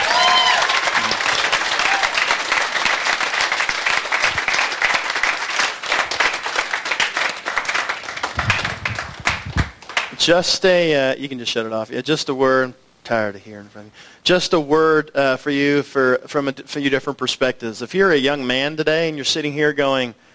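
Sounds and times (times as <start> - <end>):
audience applause: 0.0 - 10.2
speech: 10.3 - 20.3.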